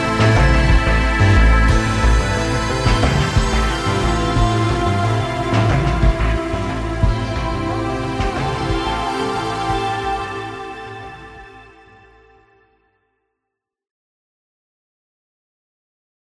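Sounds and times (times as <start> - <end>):
MicroFreak synthesizer: 0.0 - 12.9.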